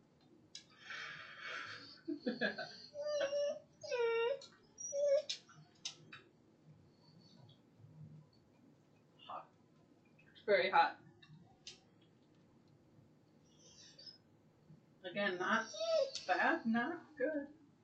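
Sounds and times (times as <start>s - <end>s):
dog whimpering for chicken: 1.4s - 5.5s, 13.5s - 14.2s, 15.3s - 16.4s
speech: 2.2s - 2.8s, 15.2s - 17.6s.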